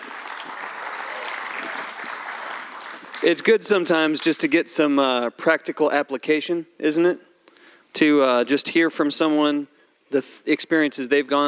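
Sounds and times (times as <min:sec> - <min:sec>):
audience applause: 0:00.0 - 0:03.5
speech: 0:03.2 - 0:07.3, 0:07.9 - 0:11.4.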